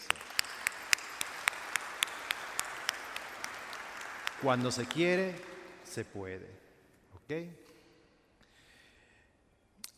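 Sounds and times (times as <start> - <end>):
church congregation applauding at Sunday Mass: 0.0 - 6.2
speech: 4.4 - 6.6, 7.3 - 7.7.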